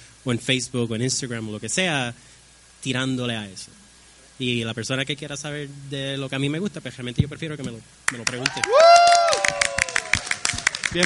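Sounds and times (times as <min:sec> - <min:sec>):
speech: 0:00.2 - 0:03.8, 0:04.4 - 0:09.7
audience applause: 0:08.2 - 0:11.0
loud rising whoop or cheer: 0:08.4 - 0:10.8.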